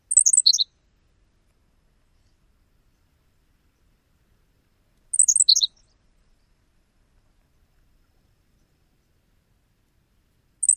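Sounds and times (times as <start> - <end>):
bird songs: 0.0 - 1.0, 2.1 - 9.4, 10.6 - 10.7.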